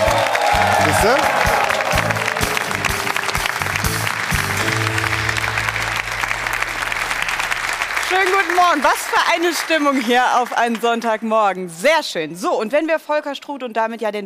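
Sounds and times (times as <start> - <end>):
audience applause: 0.0 - 11.3
speech: 1.0 - 1.4, 8.2 - 14.2.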